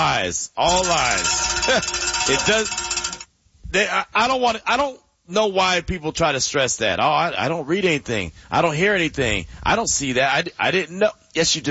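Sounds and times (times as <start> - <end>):
speech: 0.2 - 2.8, 3.7 - 11.6
bell ringing: 0.6 - 3.3.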